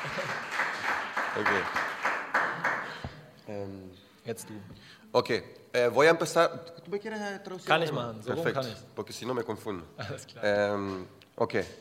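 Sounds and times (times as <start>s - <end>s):
laughter: 0.0s - 0.6s, 10.0s - 10.6s
applause: 0.0s - 3.2s
speech: 1.4s - 1.9s, 4.3s - 11.7s.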